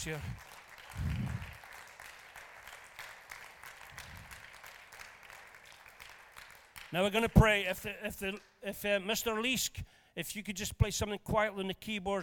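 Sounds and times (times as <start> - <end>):
speech: 0.0 - 1.1, 6.9 - 12.2
audience applauding: 0.0 - 7.6.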